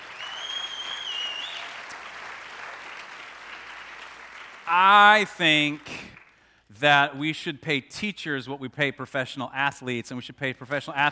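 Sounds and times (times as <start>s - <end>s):
roomful of people applauding teachers: 0.0s - 6.5s
faint high whistle-like tone: 0.2s - 1.8s
speech: 4.7s - 11.1s.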